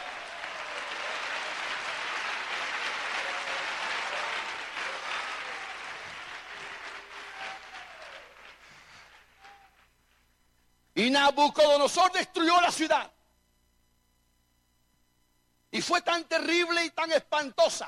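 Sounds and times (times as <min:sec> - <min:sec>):
audience applauding: 0:00.0 - 0:10.0
speech: 0:11.0 - 0:13.2, 0:15.8 - 0:17.8.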